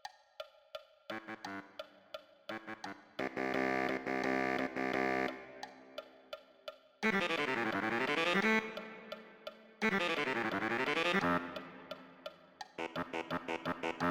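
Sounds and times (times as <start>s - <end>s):
baritone saxophone: 1.1s - 1.8s, 2.5s - 5.7s, 7.0s - 14.0s.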